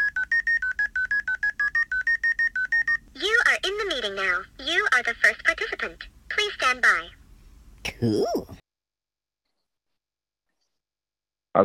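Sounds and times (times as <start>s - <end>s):
phone keypad tones entering a Zoom meeting ID: 0.0s - 3.0s
speech: 3.8s - 7.2s, 7.9s - 8.6s.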